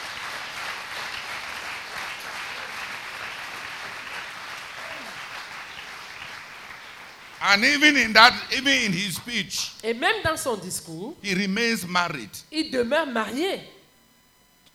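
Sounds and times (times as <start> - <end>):
audience applause: 0.0 - 9.4
speech: 7.4 - 13.8.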